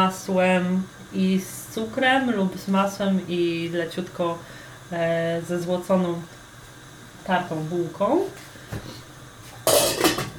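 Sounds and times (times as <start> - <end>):
speech: 0.1 - 6.4, 7.2 - 9.0
lid set onto a cooking pot: 9.6 - 10.3.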